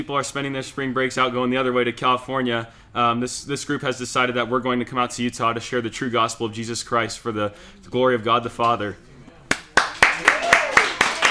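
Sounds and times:
speech: 0.0 - 9.1
rhythmic audience clapping: 9.5 - 11.2.

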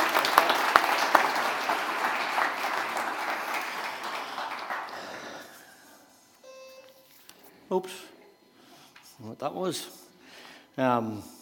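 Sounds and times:
applause: 0.0 - 5.6
speech: 7.8 - 8.1, 9.2 - 10.0, 10.8 - 11.3.

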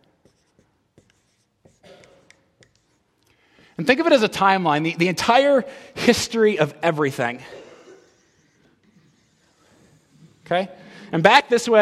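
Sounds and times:
writing on a board: 0.0 - 3.2, 8.1 - 10.7
speech: 3.8 - 7.6, 10.5 - 11.8.

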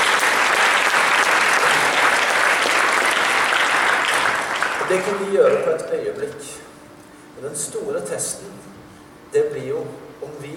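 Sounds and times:
audience applause: 0.0 - 5.7
speech: 4.9 - 6.7, 7.4 - 10.5.

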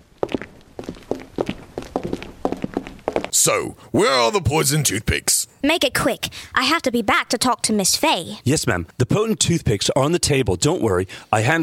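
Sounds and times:
footsteps of a few people walking up to a body: 0.0 - 3.4
shoes scuffing: 0.2 - 3.3
speech: 3.4 - 11.6.

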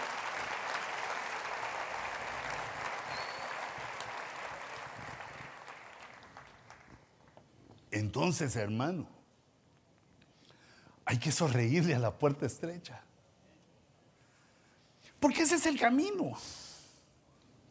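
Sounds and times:
audience applauding: 0.0 - 7.4
speech: 8.0 - 9.2, 11.1 - 13.1, 15.3 - 16.6.

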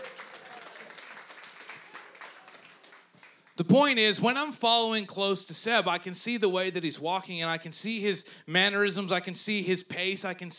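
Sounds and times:
audience clapping: 0.0 - 3.6
speech: 3.6 - 10.5.

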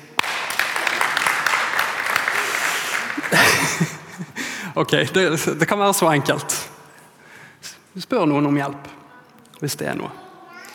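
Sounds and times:
audience applause: 0.0 - 4.6
laughter: 1.8 - 4.6
speech: 3.3 - 4.0, 4.8 - 6.7, 8.0 - 9.0, 9.6 - 10.2.

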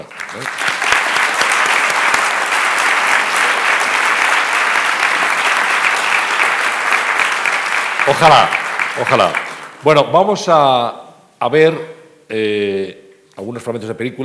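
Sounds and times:
speech: 0.0 - 0.8, 8.1 - 14.2
audience applause: 0.0 - 9.8.

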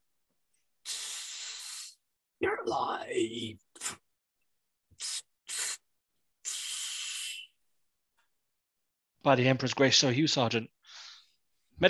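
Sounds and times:
hissing breath through the rebreather of a helmet mask: 0.8 - 2.0, 5.0 - 5.8, 6.4 - 7.5
speech: 2.4 - 4.0, 9.2 - 10.8.

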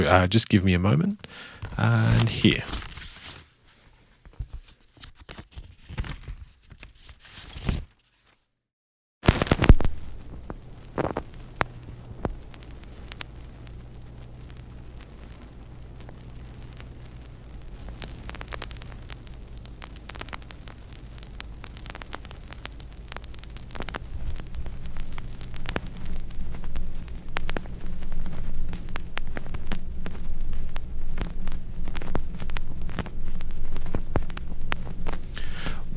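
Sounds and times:
speech: 0.0 - 2.9
vinyl record surface crackle and hiss: 0.1 - 8.4, 9.2 - 35.9
steady low hum: 9.9 - 35.9.

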